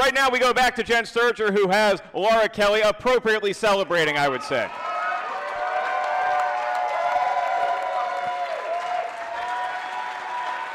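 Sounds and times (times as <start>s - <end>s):
speech: 0.1s - 4.9s
scattered audience cheers and whoops: 4.7s - 10.7s
audience ovation at a live event: 4.8s - 10.7s.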